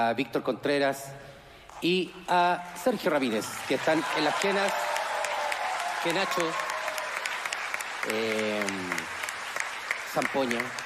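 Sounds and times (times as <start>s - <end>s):
speech: 0.0s - 5.0s, 6.0s - 6.7s, 8.0s - 9.2s, 10.1s - 10.8s
audience applause for musicians at a live concert: 3.1s - 10.8s.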